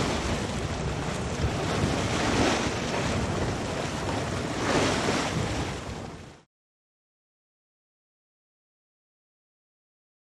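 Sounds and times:
boat bow wash: 0.0 - 6.5.

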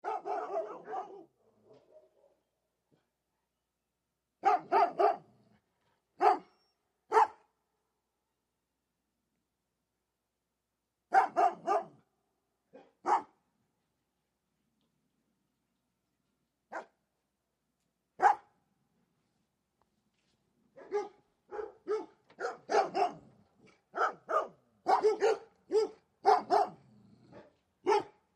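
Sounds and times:
Bernese dogs barking: 0.0 - 2.4, 4.4 - 5.2, 6.2 - 6.5, 11.1 - 12.0, 20.8 - 23.2, 23.9 - 26.8, 27.4 - 28.2.

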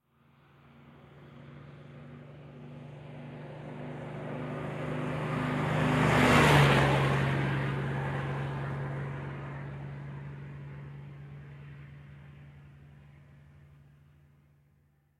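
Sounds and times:
Dodge Power Wagon fire truck passing by fast, medium close: 0.3 - 14.5.

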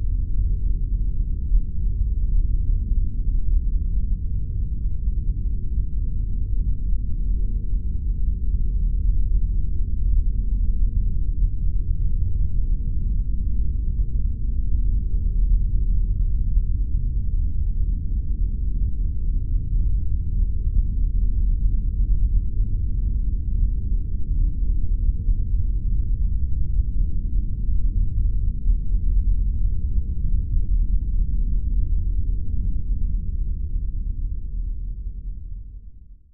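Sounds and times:
nuclear reactor ambience: 0.0 - 36.2.

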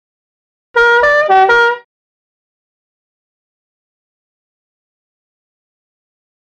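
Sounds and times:
foreign Fancy Windtone H horn: 0.8 - 1.9.

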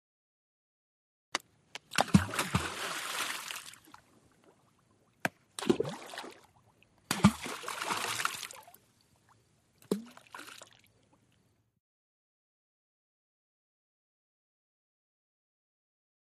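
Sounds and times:
boulder and rocks splashing: 1.9 - 4.0, 5.6 - 6.5, 7.1 - 8.8.

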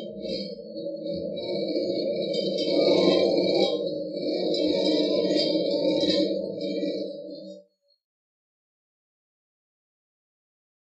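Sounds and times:
synthesized alien voices: 0.0 - 7.6.

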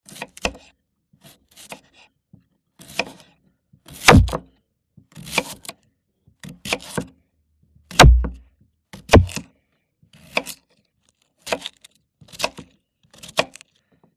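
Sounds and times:
potato slicing: 0.0 - 2.0, 3.9 - 4.4, 5.2 - 5.7, 6.4 - 7.0, 9.0 - 9.5, 10.2 - 10.7, 11.4 - 13.8.

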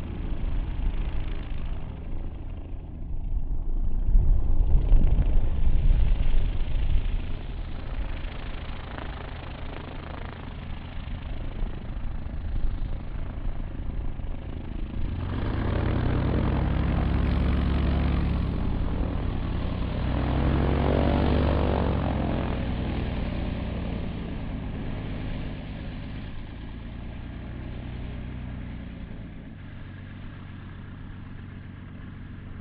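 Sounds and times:
heavy glider tow plane engine: 0.0 - 32.5.

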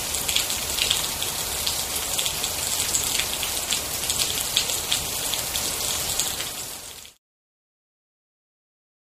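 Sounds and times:
rain in a city alley: 0.0 - 7.2.

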